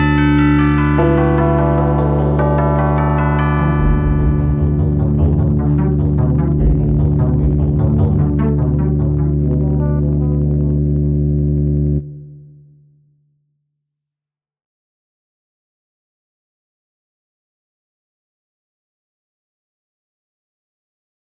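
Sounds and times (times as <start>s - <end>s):
Slendro scale melody generated with modulo arithmetic seeds: 0.0s - 12.0s.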